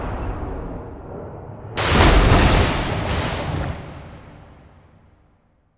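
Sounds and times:
splashdown into water: 0:01.8 - 0:04.3.

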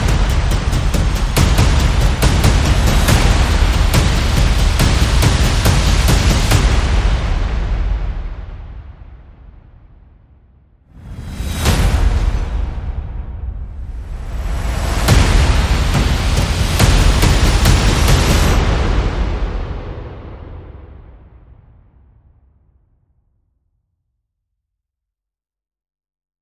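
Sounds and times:
percussion: 0:00.0 - 0:09.7, 0:10.9 - 0:21.6.

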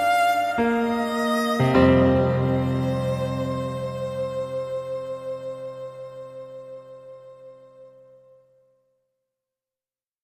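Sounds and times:
violin: 0:00.0 - 0:08.0
piano: 0:00.0 - 0:08.7.

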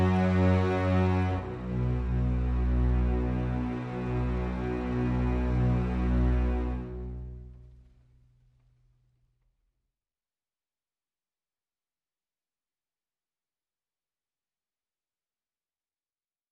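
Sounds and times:
low strings: 0:00.0 - 0:08.3.

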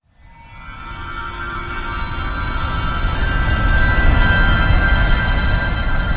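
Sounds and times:
fairy magic transition: 0:00.2 - 0:06.0.

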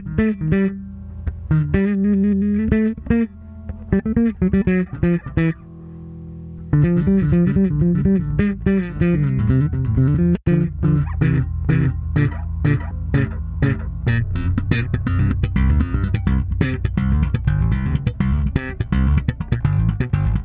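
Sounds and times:
solo bass groove: 0:00.0 - 0:20.4.

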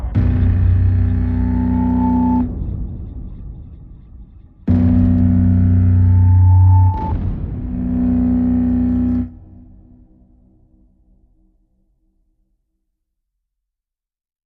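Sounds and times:
synth pads: 0:00.1 - 0:10.8.

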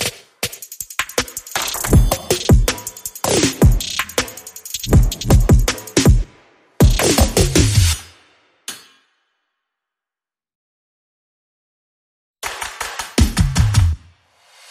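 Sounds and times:
drums: 0:00.0 - 0:08.2, 0:12.4 - 0:14.7.

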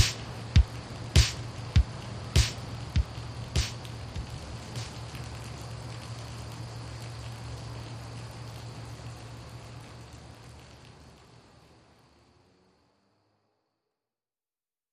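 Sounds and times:
drums: 0:00.0 - 0:05.1.

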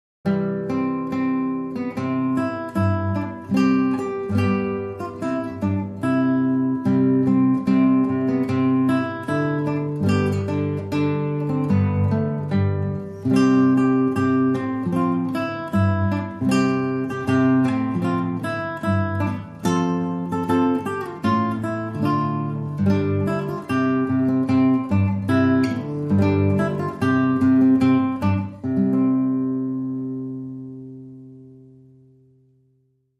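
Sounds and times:
solo guitar: 0:00.2 - 0:33.1.

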